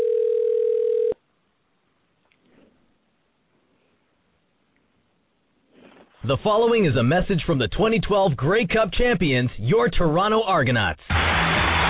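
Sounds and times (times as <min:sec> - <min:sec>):
telephone ringing: 0:00.0 - 0:01.2
speech: 0:06.3 - 0:11.3.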